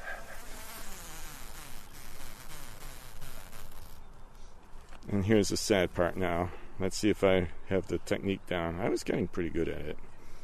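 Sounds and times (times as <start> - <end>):
honey bee drones buzzing: 0.0 - 4.0
speech: 5.1 - 10.1.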